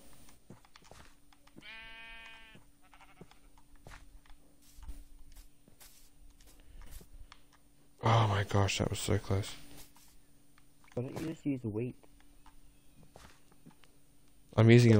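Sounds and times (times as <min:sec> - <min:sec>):
sheep bleating: 0:01.5 - 0:03.6
speech: 0:08.4 - 0:09.6, 0:11.4 - 0:12.1, 0:14.6 - 0:14.9.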